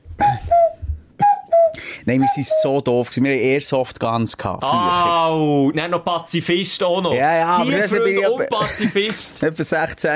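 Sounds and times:
voice imitating a cuckoo call: 0.1 - 2.7
speech: 2.0 - 10.1
laughter: 7.8 - 9.3.

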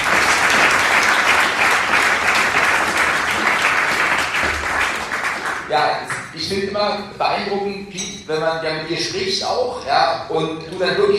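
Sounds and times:
audience applause: 0.0 - 6.3
speech: 5.8 - 11.1.

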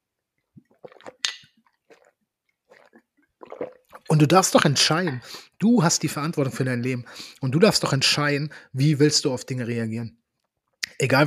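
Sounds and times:
person sipping and swallowing a drink: 0.4 - 5.6
speech: 4.1 - 10.2, 11.0 - 11.2.

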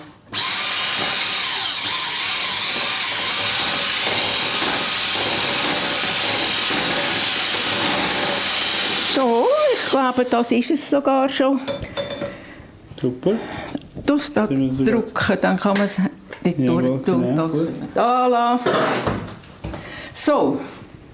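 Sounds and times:
electric kitchen mixer whirring: 0.3 - 10.4
speech: 10.0 - 11.9, 13.0 - 19.2, 20.2 - 20.7.

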